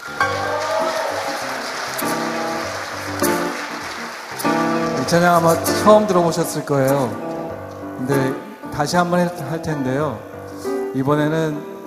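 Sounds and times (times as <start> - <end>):
audience applause: 0.0 - 7.2
speech: 5.1 - 7.3, 8.0 - 10.3, 10.9 - 11.7.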